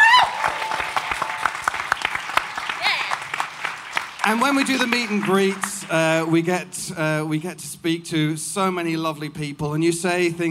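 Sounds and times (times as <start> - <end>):
faint calls and whoops from the audience: 0.0 - 1.4
audience applause: 0.0 - 6.4
speech: 4.2 - 10.4.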